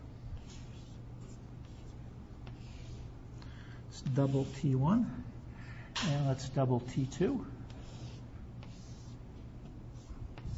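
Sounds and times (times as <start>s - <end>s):
marker or chalk strokes drawing lattice cells on a board: 0.4s - 3.0s, 4.1s - 4.6s, 7.7s - 9.2s, 9.9s - 10.5s
speech: 4.0s - 5.3s, 6.0s - 7.6s.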